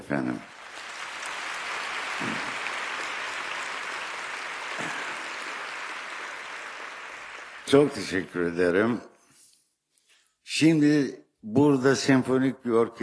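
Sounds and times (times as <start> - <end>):
speech: 0.1 - 0.5, 2.2 - 2.6, 7.7 - 9.1, 10.6 - 13.0
audience applause: 0.4 - 8.5.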